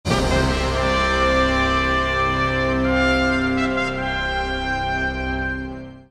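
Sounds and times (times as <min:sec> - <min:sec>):
theme music: 0:00.0 - 0:06.0.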